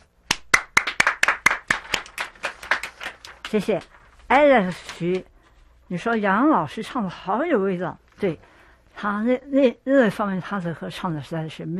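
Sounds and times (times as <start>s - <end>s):
hand clapping: 0.2s - 3.9s
speech: 3.5s - 5.3s, 5.9s - 11.7s.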